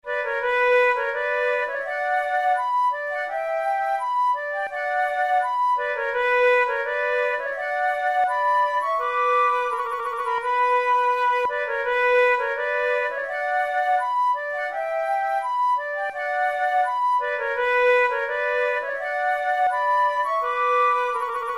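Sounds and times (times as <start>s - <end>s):
flute duet playing tunes: 0.0s - 21.5s.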